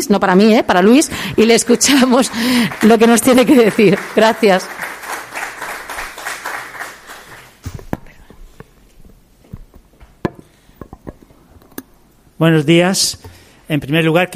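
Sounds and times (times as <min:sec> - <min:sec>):
speech: 0:00.0 - 0:04.9, 0:12.4 - 0:14.3
audience applause: 0:01.3 - 0:07.6.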